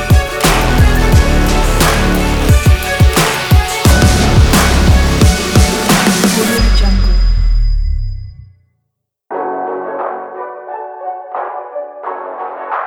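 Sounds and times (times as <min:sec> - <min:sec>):
epic sport trap dramatic workout music: 0:00.0 - 0:07.4.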